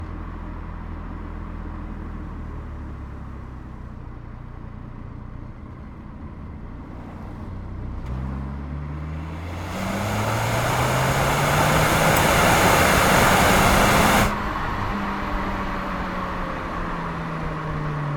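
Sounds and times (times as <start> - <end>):
Audi Q2 engine revving up and down while driving, onboard at right exhaust: 8.0 - 18.0.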